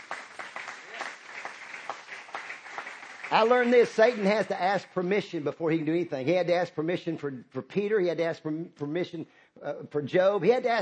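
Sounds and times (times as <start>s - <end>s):
audience clapping: 0.0s - 4.9s
speech: 3.3s - 10.8s.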